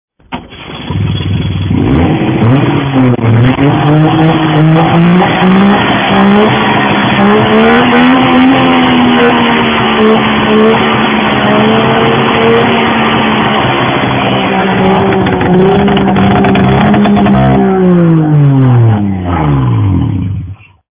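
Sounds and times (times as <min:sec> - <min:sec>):
Saab 96 two-stroke engine: 0:00.2 - 0:20.7.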